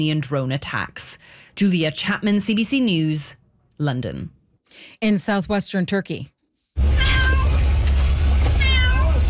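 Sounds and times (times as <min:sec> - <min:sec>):
speech: 0:00.0 - 0:06.9
cat meowing: 0:07.0 - 0:07.6, 0:08.6 - 0:09.2.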